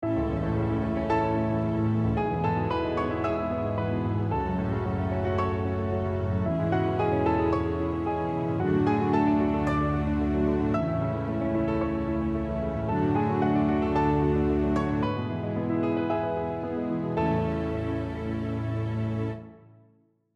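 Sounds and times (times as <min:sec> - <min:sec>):
piano accompaniment: 0:00.0 - 0:19.8.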